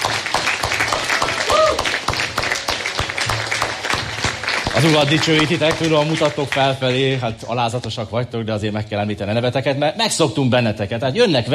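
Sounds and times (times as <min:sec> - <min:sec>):
crowd applause: 0:00.0 - 0:07.4
speech: 0:04.8 - 0:11.5.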